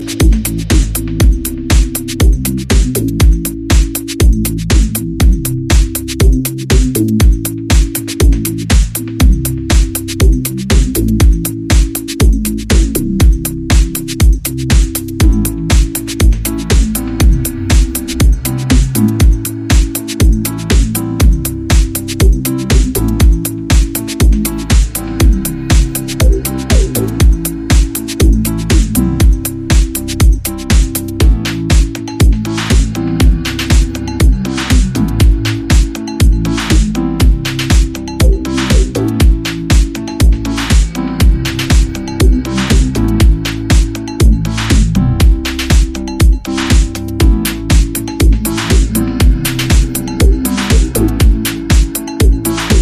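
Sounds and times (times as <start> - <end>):
instrumental mix: 0.0 - 52.7.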